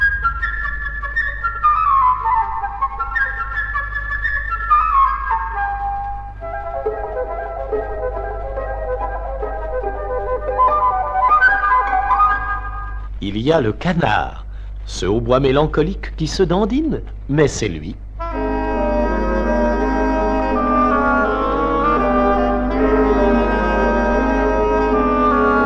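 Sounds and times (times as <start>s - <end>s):
flute playing a melody: 0.0s - 13.2s, 18.1s - 25.6s
speech: 13.3s - 18.0s.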